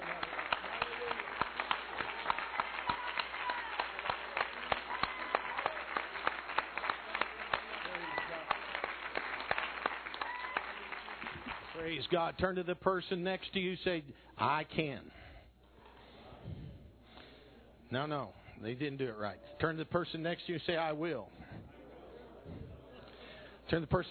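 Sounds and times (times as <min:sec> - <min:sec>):
audience hand clapping: 0:00.0 - 0:12.2
speech: 0:12.0 - 0:15.2, 0:17.9 - 0:21.4, 0:23.7 - 0:24.0.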